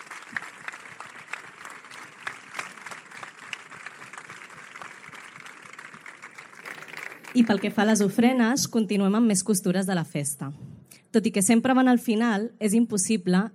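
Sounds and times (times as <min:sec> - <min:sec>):
audience applause: 0:00.0 - 0:08.2
speech: 0:07.4 - 0:13.5.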